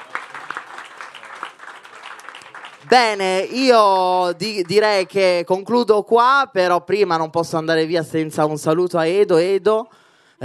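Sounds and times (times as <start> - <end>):
live comedy audience applauding in Italy: 0.0 - 5.2
speech: 2.8 - 10.4.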